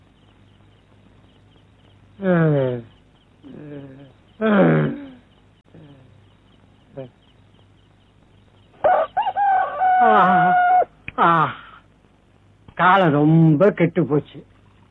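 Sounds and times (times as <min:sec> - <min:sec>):
speech: 0:02.2 - 0:02.9, 0:13.1 - 0:14.5
rooster crowing: 0:08.8 - 0:10.9.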